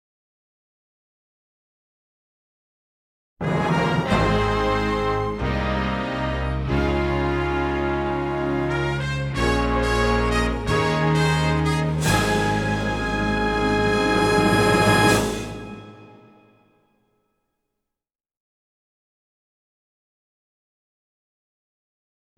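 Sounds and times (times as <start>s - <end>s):
instrumental fanfare: 3.4s - 16.6s.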